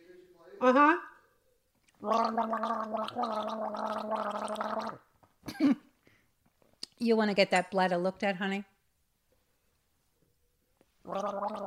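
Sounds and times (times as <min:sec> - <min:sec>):
speech: 0:00.6 - 0:01.1, 0:02.0 - 0:05.8, 0:07.0 - 0:08.7, 0:11.1 - 0:11.6
person deliberately making gargling noises: 0:02.0 - 0:05.0, 0:11.1 - 0:11.6.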